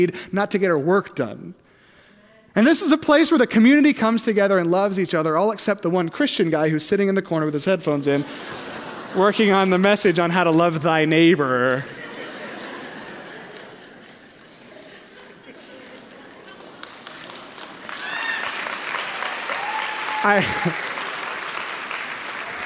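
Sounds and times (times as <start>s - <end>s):
speech: 0.0s - 1.6s, 2.6s - 12.0s, 20.2s - 20.9s
laughter: 8.2s - 10.2s, 11.6s - 17.5s, 20.2s - 21.0s
audience clapping: 12.3s - 22.6s.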